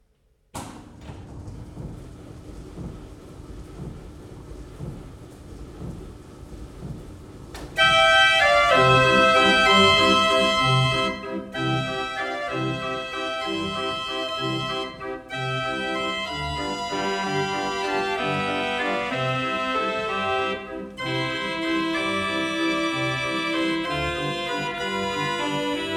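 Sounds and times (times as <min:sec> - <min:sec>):
carousel organ: 0:07.8 - 0:25.9.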